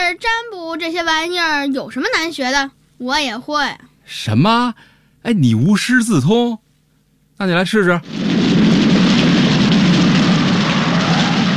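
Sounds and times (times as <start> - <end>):
speech: 0.1 - 6.6, 7.4 - 8.8
rain falling: 8.0 - 11.5.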